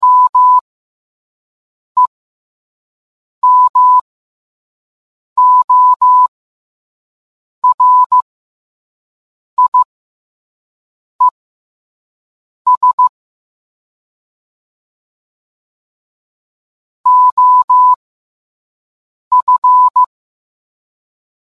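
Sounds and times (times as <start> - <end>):
morse code beeps: 0.0 - 0.6, 3.4 - 4.0, 5.4 - 6.3, 7.6 - 8.2, 9.6 - 9.9, 12.7 - 13.1, 17.1 - 18.0, 19.3 - 20.1.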